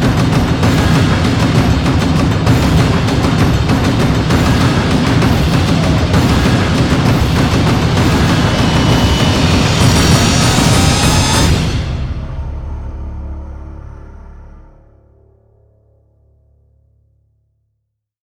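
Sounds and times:
drums: 0.0s - 13.9s.

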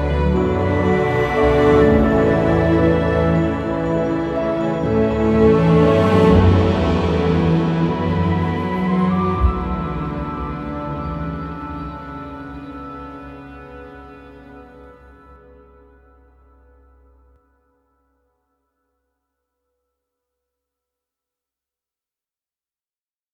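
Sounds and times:
dramatic ambient music: 0.0s - 17.4s.

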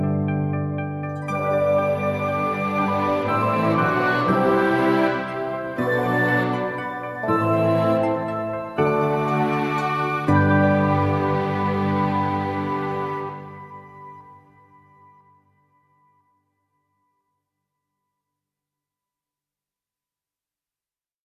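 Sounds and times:
dozy ambient music: 0.0s - 15.6s.

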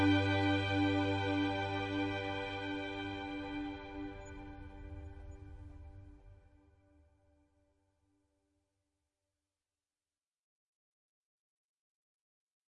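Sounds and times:
ambient music: 0.0s - 6.6s.

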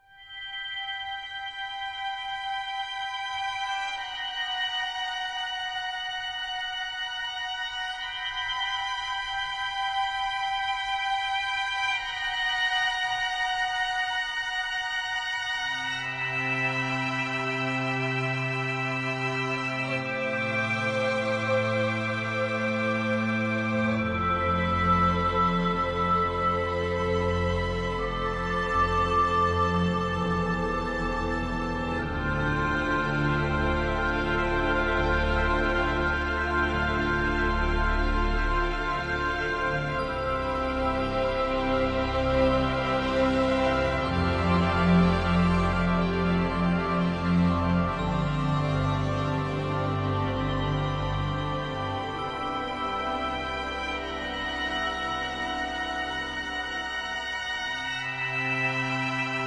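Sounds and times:
ambient music: 0.0s - 59.4s.

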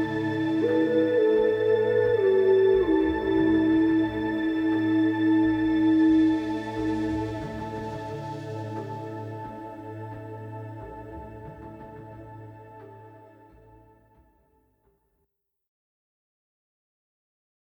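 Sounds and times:
sleep tones: 0.0s - 12.9s.

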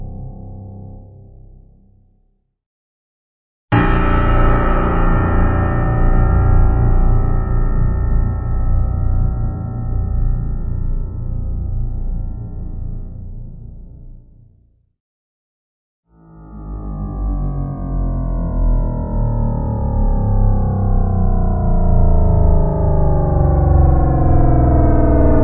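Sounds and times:
deep piano sustains: 3.7s - 14.2s, 16.4s - 25.4s.

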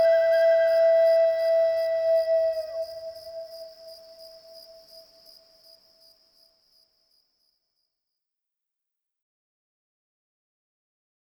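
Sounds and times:
relaxing flute music for sleep: 0.0s - 4.8s
nature sounds: 0.0s - 6.5s.

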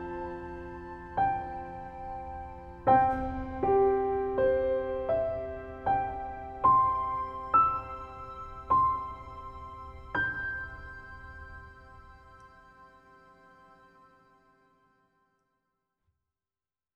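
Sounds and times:
piano lullaby: 0.0s - 15.2s.

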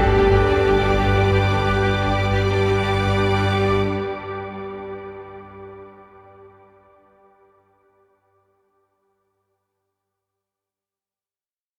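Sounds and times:
prize ambient music: 0.0s - 8.4s.

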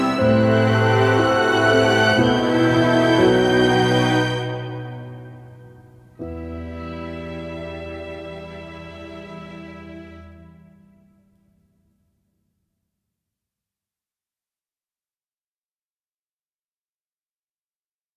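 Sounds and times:
dramatic cinematic music: 0.0s - 10.3s.

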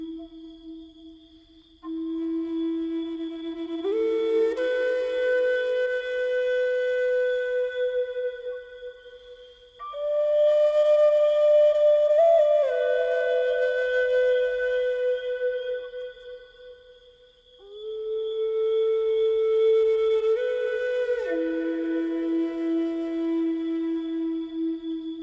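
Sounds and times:
crickets chirping: 0.0s - 25.2s
flute: 0.0s - 25.2s.

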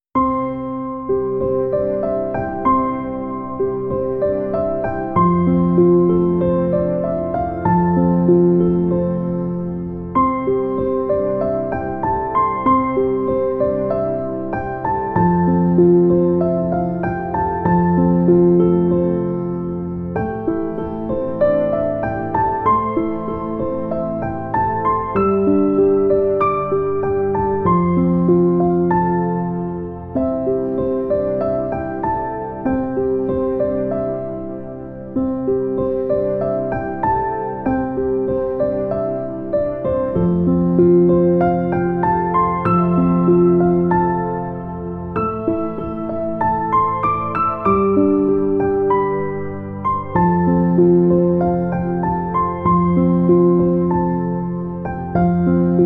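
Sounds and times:
relaxing piano for sleeping babies: 0.0s - 55.8s.

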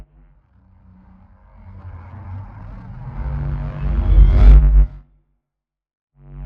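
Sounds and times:
storm: 0.5s - 4.9s.

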